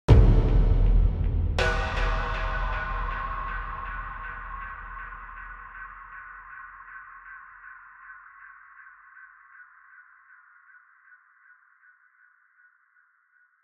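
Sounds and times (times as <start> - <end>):
big dark cinematic sound design hit: 0.1 - 6.7.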